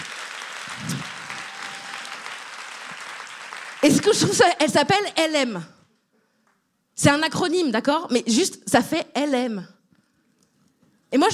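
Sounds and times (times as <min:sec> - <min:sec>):
audience applause: 0:00.0 - 0:04.3
speech: 0:00.7 - 0:01.1, 0:03.8 - 0:05.8, 0:07.0 - 0:09.8, 0:11.1 - 0:11.3.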